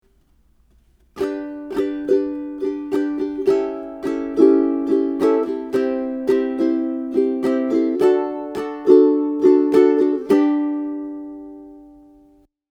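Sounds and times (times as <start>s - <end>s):
ukulele strumming: 0.0s - 12.5s.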